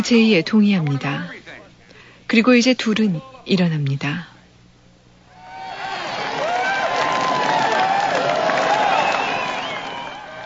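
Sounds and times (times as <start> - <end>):
speech: 0.0 - 1.5, 2.3 - 4.3
crowd applause and cheering: 5.3 - 10.4.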